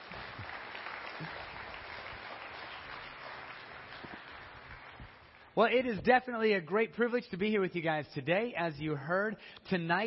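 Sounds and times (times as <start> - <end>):
audience clapping hands: 0.0 - 6.2
speech: 5.6 - 10.0.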